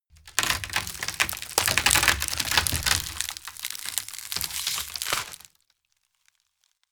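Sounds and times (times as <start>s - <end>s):
something tearing: 0.1s - 5.5s.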